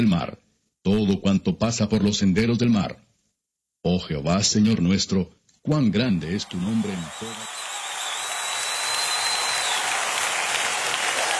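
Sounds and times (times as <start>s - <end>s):
speech: 0.0s - 3.0s, 3.8s - 7.6s
audience applause: 6.3s - 11.3s.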